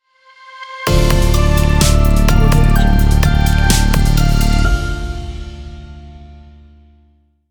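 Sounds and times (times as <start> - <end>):
reversed tech logo sound: 0.9 - 5.9.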